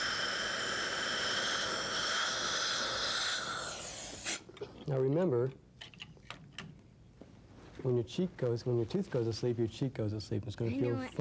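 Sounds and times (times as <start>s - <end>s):
dental water rinse spraying into a mouth: 0.0s - 4.4s
speech: 4.9s - 5.6s, 7.8s - 11.1s.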